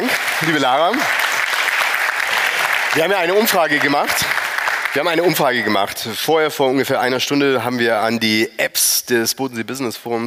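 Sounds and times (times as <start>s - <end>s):
audience applause: 0.0s - 6.0s
speech: 0.4s - 1.2s, 2.9s - 4.4s, 5.0s - 10.2s.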